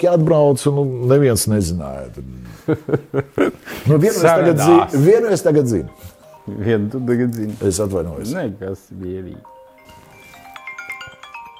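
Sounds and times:
speech: 0.0 - 9.5
laughter: 2.4 - 5.1
phone ringtone for an incoming call from an Israeli number: 9.4 - 11.5.

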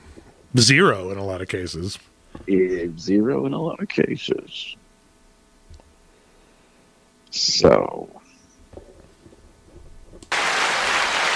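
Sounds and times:
speech: 0.5 - 4.8, 7.3 - 8.2
crowd cheering: 10.3 - 11.3.

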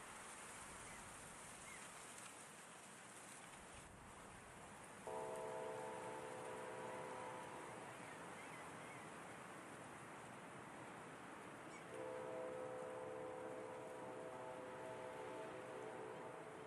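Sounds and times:
wind blowing steadily through grass: 0.0 - 16.6
train horn chord: 5.0 - 8.6, 11.8 - 16.6.

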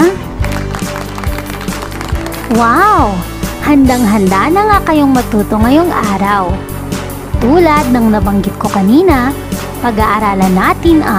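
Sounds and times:
clapping: 0.4 - 2.7
speech: 2.5 - 6.7, 7.4 - 11.1.

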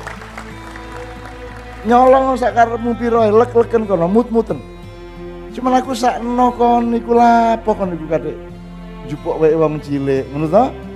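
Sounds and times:
audience applause: 0.0 - 2.8
speech: 1.8 - 4.7, 5.6 - 10.8.

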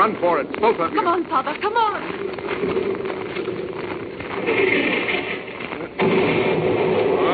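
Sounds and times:
speech: 0.0 - 3.2, 4.4 - 5.3
naval gunfire sound effect from a radio drama: 4.4 - 7.3.

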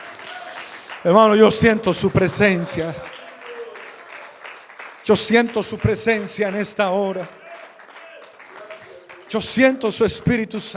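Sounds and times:
audience applause: 0.0 - 10.3
speech: 1.0 - 3.2, 5.1 - 7.4, 9.3 - 10.7.

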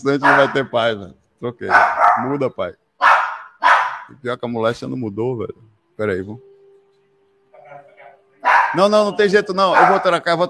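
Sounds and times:
speech: 0.0 - 2.8, 4.1 - 6.5, 8.7 - 10.4
dog barking: 0.1 - 0.7, 1.7 - 2.4, 3.0 - 4.2, 8.4 - 8.9, 9.6 - 10.2.

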